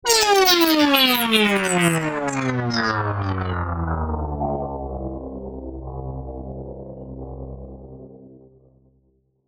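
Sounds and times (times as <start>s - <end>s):
synthetic swell: 0.0s - 7.6s.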